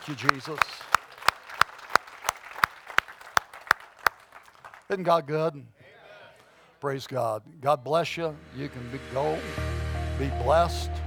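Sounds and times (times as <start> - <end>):
speech: 0.0 - 0.9, 4.9 - 5.8, 6.8 - 11.0
scattered applause: 0.0 - 5.1
crowd clapping in unison: 0.0 - 5.2.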